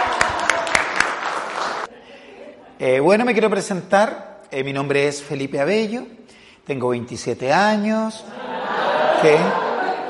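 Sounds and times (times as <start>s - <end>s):
audience applause: 0.0s - 1.9s
laughter: 1.8s - 2.9s, 8.3s - 10.0s
speech: 2.8s - 8.4s, 9.2s - 9.6s.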